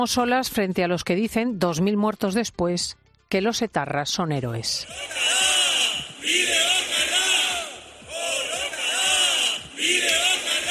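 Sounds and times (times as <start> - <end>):
speech: 0.0 - 5.5
large crowd of young people chanting a slogan in unison: 4.8 - 10.6.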